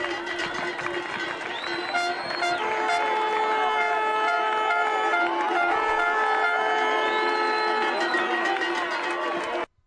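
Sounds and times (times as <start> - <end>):
crowd cheering as first race runners arrive: 0.0 - 9.7
horn-like tones: 0.0 - 9.7
shrill whistles: 1.4 - 2.6, 7.0 - 8.5.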